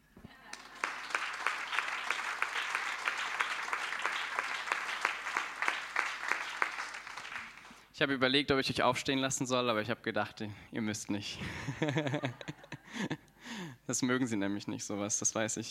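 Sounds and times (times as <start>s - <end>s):
laughter: 0.3s - 2.2s, 11.4s - 13.2s
audience clapping: 0.5s - 7.8s
speech: 8.0s - 15.6s.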